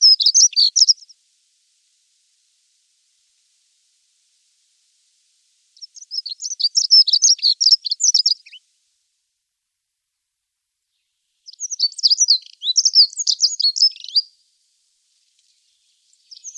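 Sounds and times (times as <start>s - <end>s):
bird singing high rapid twittering phrases: 0.0s - 1.1s, 5.8s - 8.6s, 11.4s - 14.3s, 15.4s - 16.5s.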